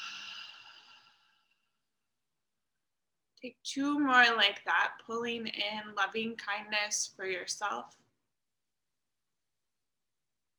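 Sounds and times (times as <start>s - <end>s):
deep breath in through the nose and out through the mouth during meditation: 0.0s - 1.7s
speech: 3.4s - 8.0s.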